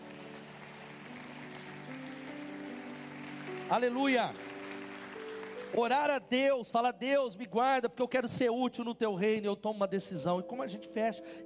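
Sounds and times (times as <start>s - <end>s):
audience applauding: 0.0s - 6.2s
sustained keyboard chords: 0.0s - 6.8s, 9.7s - 11.4s
speech: 3.7s - 4.4s, 5.7s - 11.4s.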